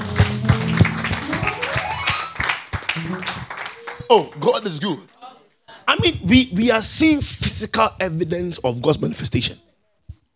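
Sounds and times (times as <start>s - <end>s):
audience clapping hands: 0.0s - 4.8s
speech: 4.1s - 5.1s, 5.9s - 9.6s.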